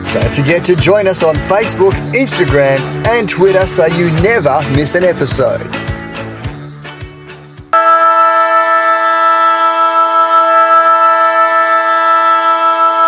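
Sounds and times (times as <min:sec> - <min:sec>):
speech: 0:00.2 - 0:05.9
football match final siren: 0:07.8 - 0:13.0.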